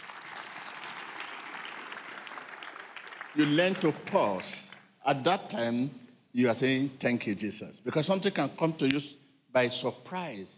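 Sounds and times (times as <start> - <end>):
audience applause: 0.0 - 4.8
speech: 3.4 - 10.5.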